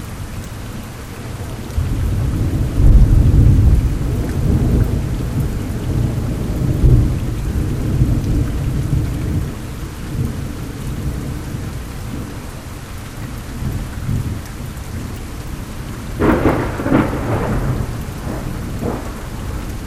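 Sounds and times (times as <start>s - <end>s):
thunderstorm in Oklahoma in October: 1.3s - 12.5s, 13.3s - 19.8s.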